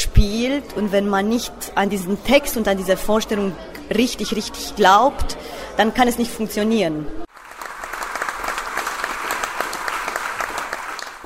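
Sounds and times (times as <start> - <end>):
speech: 0.2 - 7.2
theatre audience applause: 7.3 - 11.2.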